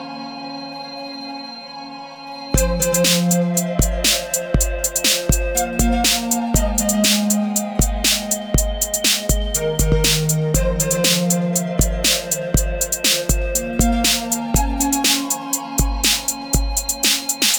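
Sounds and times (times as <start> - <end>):
Russian psychedelic music: 2.6 - 17.5.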